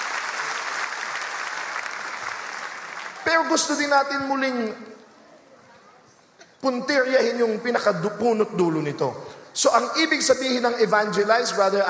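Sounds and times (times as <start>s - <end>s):
seated audience applauding at a Sunday church faith talk: 0.0s - 3.8s
speech: 3.3s - 4.9s, 6.6s - 11.8s.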